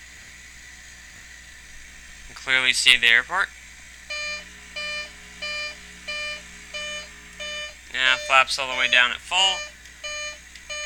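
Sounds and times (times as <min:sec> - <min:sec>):
speech: 0:02.4 - 0:03.6, 0:08.1 - 0:09.7
cockpit warning beeps: 0:04.1 - 0:10.8.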